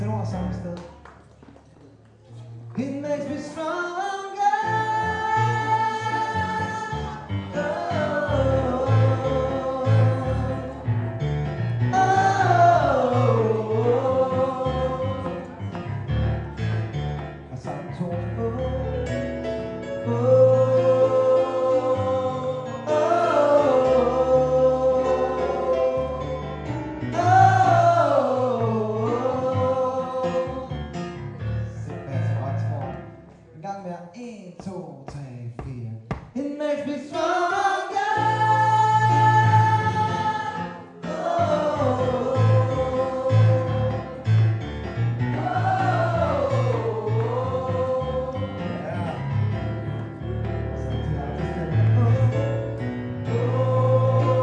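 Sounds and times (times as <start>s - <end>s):
tenor singing: 2.7s - 54.4s
choir singing: 4.2s - 16.6s, 20.0s - 30.9s, 37.0s - 49.4s, 50.9s - 54.4s.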